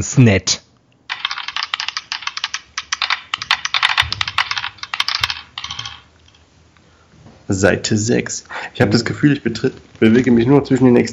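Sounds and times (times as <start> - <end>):
speech: 0.0 - 0.6, 7.5 - 11.1
dice being rolled and clattering: 1.1 - 6.4.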